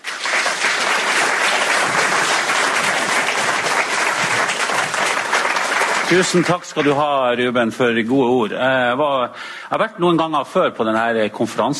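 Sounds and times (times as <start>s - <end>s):
audience applause: 0.0s - 7.0s
speech: 6.1s - 11.7s.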